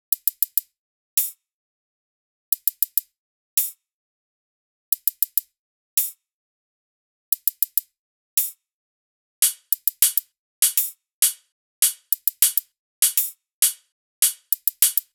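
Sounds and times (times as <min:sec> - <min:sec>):
hi-hat loop: 0:09.4 - 0:15.1.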